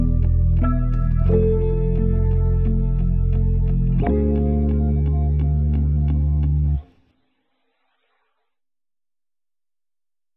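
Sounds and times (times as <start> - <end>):
music: 0.0 - 7.0.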